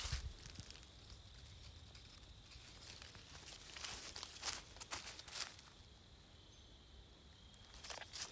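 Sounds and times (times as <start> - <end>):
crickets chirping near sunset: 0.0 - 8.3.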